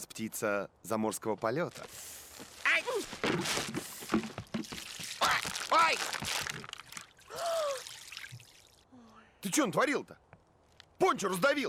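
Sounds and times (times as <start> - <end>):
speech: 0.0 - 3.9, 9.4 - 10.3, 11.0 - 11.6
bucket of water falling onto the floor: 3.2 - 8.6
water spilling onto sketches: 4.5 - 8.8.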